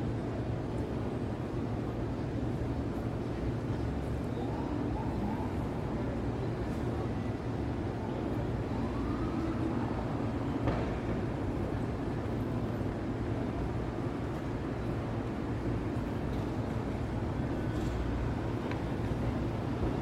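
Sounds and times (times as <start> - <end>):
city traffic roar: 0.0 - 20.0.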